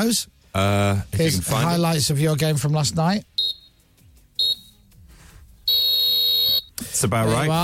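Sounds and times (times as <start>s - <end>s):
speech: 0.0s - 3.3s, 7.0s - 7.6s
referee's whistle in Chelsea-Liverpool football highlights: 3.4s - 3.8s, 4.4s - 4.8s, 5.7s - 6.8s.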